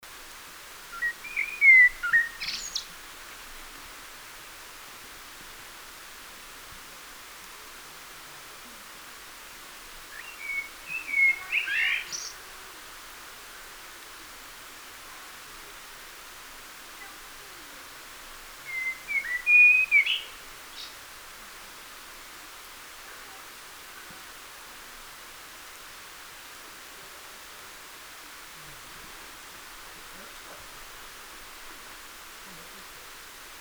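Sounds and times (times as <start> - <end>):
common blackbird singing: 0.9 - 2.9, 10.2 - 12.4, 18.7 - 20.9.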